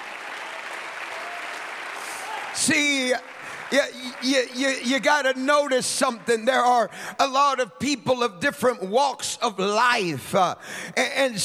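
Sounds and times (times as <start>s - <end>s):
church congregation clapping along in worship: 0.0s - 7.6s
speech: 2.6s - 11.4s.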